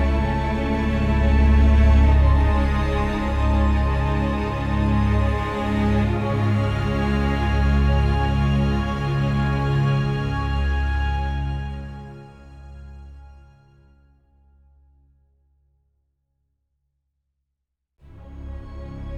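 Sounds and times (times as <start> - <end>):
long music transition: 0.0 - 11.7.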